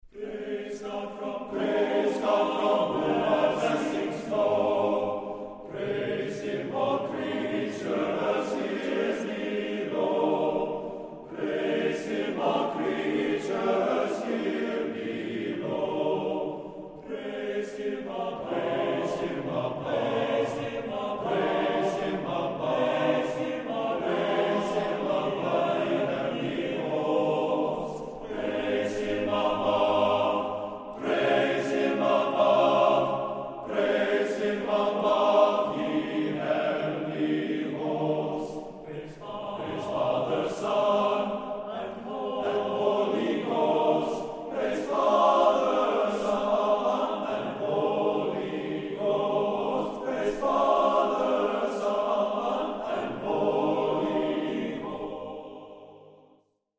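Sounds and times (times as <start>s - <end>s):
men's choir: 0.0s - 56.4s.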